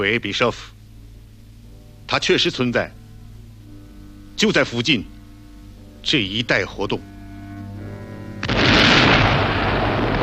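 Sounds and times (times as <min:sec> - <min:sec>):
speech: 0:00.0 - 0:00.8, 0:02.1 - 0:03.0, 0:04.4 - 0:05.2, 0:06.0 - 0:07.1
explosion blowing up railway viaduct: 0:08.4 - 0:10.2.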